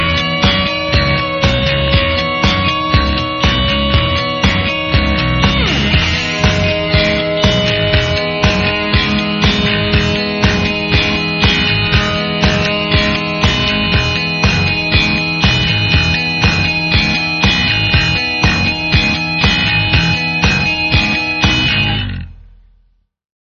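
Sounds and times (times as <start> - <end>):
Ebow guitar drone: 0.0 - 22.6.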